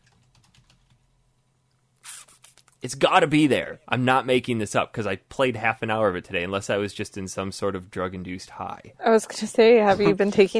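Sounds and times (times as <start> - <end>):
faint typing on a computer keyboard entering a search: 0.0 - 1.0
speech: 2.8 - 10.5.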